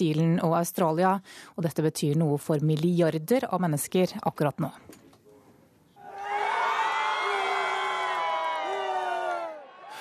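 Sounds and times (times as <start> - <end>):
speech: 0.0 - 5.0
large crowd cheering in the streets of Kabul: 6.0 - 9.9.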